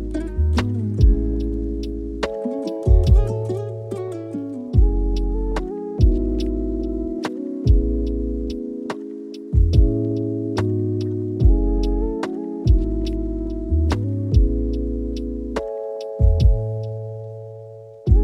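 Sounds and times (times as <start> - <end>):
sweet calm lofi chillhop music: 0.0 - 18.2.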